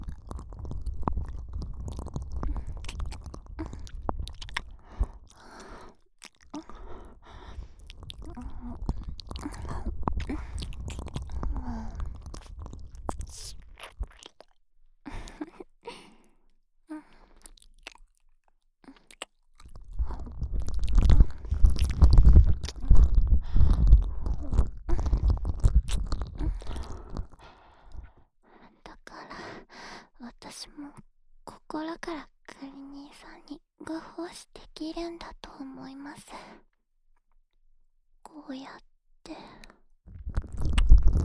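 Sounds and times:
ear licking in the left ear: 0.0 - 14.5, 19.0 - 27.4.

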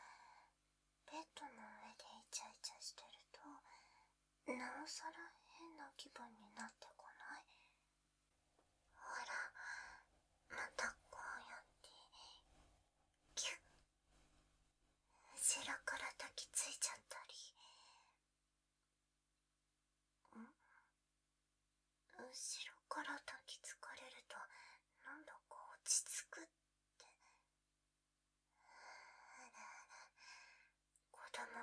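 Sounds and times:
sweet ASMR whispering: 1.1 - 7.8, 9.0 - 12.5, 13.4 - 13.7, 15.2 - 18.1, 22.1 - 27.4, 29.3 - 30.2, 31.1 - 31.6.

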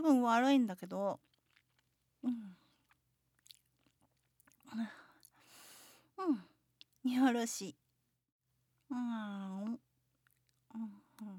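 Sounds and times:
speech: 0.0 - 1.3, 2.2 - 2.6, 4.7 - 5.0, 6.2 - 7.8, 8.9 - 9.9, 10.8 - 11.3
someone chewing while eating: 1.2 - 4.6, 10.2 - 10.6.

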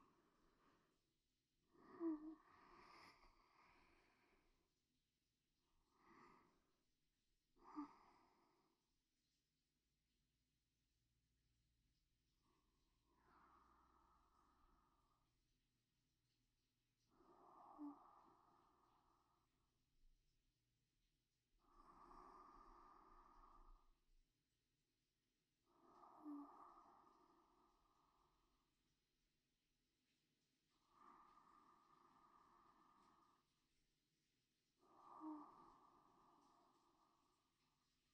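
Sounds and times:
sleep breathing: 0.0 - 1.1, 1.7 - 4.8, 5.6 - 6.8, 7.6 - 8.9, 12.4 - 15.5, 17.0 - 19.7, 21.6 - 24.1, 25.6 - 28.9, 30.1 - 38.1.

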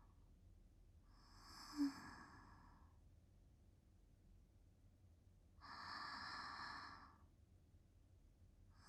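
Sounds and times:
sleeping breath: 1.1 - 2.9, 5.6 - 7.2.

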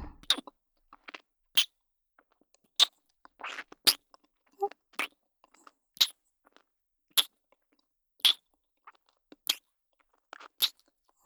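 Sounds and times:
ASMR ear licking sounds in the left ear: 0.2 - 1.2, 2.8 - 6.1, 8.2 - 9.6, 10.3 - 10.8.

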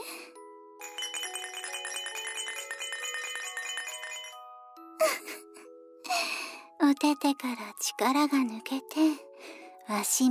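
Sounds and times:
baby rattle being shaken: 0.8 - 4.4
speech: 7.0 - 9.3, 9.9 - 10.2.

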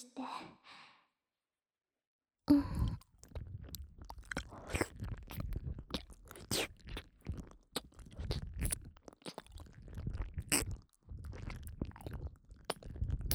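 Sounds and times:
ASMR ear licking sounds in the left channel: 2.7 - 13.2.

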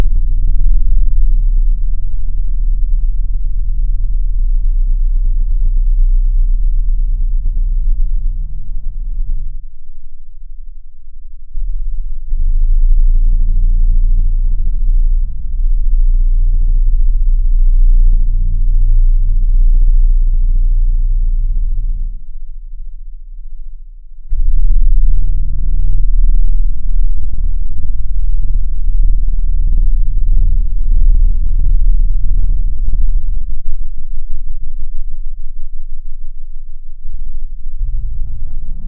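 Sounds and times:
10 Hz to 30 Hz low frequency tone: 0.0 - 38.8.

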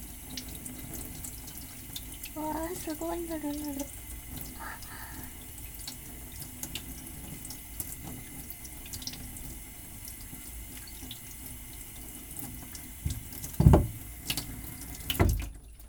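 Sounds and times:
tap water running into a sink: 0.0 - 15.8
speech: 2.4 - 4.0.

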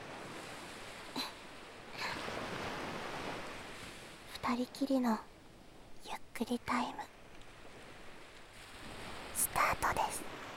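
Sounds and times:
waves washing onto sandy beach: 0.0 - 4.4, 7.5 - 10.5
speech: 4.5 - 5.3, 6.0 - 7.1.

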